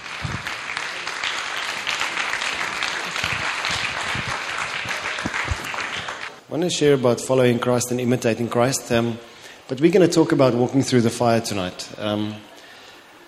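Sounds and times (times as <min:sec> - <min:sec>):
church congregation applause welcoming a pastor: 0:00.0 - 0:06.4
speech: 0:06.5 - 0:12.5.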